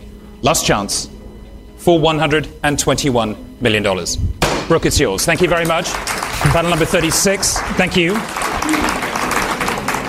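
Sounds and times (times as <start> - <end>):
speech: 0.4 - 1.2, 1.8 - 9.1
auction room applause after winning bid: 5.4 - 10.0.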